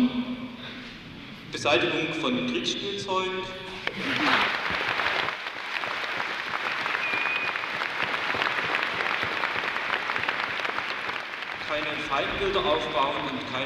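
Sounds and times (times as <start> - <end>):
speech: 1.5 - 4.8, 12.1 - 13.6
thunderous applause: 3.8 - 13.6.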